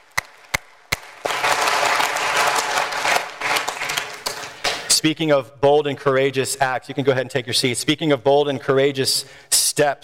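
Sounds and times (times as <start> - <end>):
audience applause: 0.0 - 4.9
sharp claps: 0.0 - 5.0
speech: 5.0 - 10.0.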